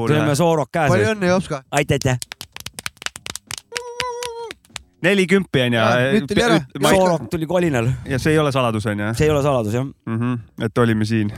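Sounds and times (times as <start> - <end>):
speech: 0.0 - 2.3, 5.0 - 11.3
hand clapping for a birthday: 1.8 - 5.0.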